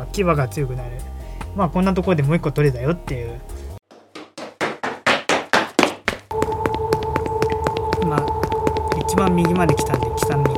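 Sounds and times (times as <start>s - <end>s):
speech: 0.1s - 3.6s, 9.2s - 10.4s
video game footsteps: 3.9s - 10.5s.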